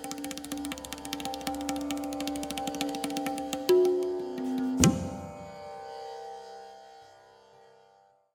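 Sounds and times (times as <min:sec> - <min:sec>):
tabla solo: 0:00.0 - 0:05.8.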